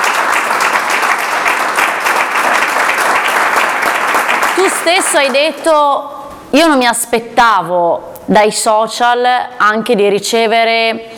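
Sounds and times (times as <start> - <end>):
audience applause: 0.0 - 5.6
speech: 4.7 - 11.1.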